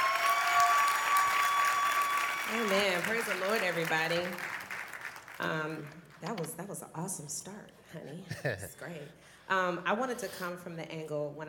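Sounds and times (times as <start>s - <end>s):
audience applause: 0.0s - 5.8s
speech: 2.5s - 4.5s, 5.4s - 11.4s.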